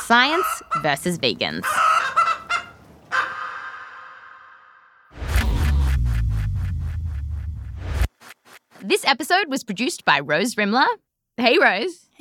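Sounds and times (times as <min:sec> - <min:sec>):
speech: 0:00.1 - 0:01.9, 0:08.9 - 0:12.1
chickens clucking and squawking: 0:00.1 - 0:04.5
low rumble: 0:05.1 - 0:08.1.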